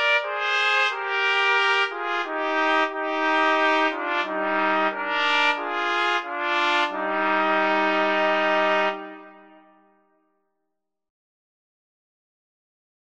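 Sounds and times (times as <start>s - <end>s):
MIDI melody: 0.0s - 10.0s.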